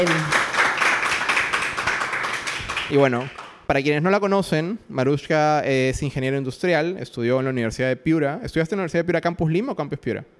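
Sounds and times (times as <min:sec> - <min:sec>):
speech: 0:00.0 - 0:00.4, 0:02.9 - 0:10.3
audience applause: 0:00.0 - 0:03.6.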